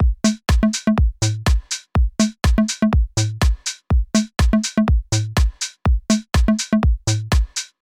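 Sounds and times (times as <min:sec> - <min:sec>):
drums: 0:00.0 - 0:07.7.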